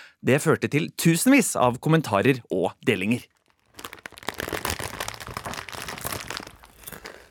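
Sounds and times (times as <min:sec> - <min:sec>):
speech: 0:00.2 - 0:04.0
crinkling candy wrapper packaging: 0:03.0 - 0:07.3.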